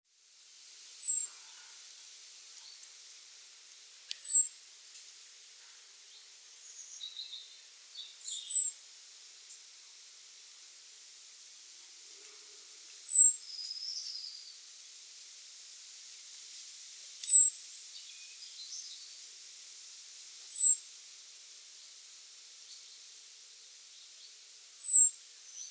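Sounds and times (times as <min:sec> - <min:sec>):
quiet background hiss: 0:00.1 - 0:25.6
common blackbird thin whistles: 0:00.9 - 0:01.3, 0:04.1 - 0:04.5, 0:08.2 - 0:08.7, 0:13.0 - 0:14.3, 0:17.1 - 0:17.5, 0:20.4 - 0:20.8, 0:24.7 - 0:25.1.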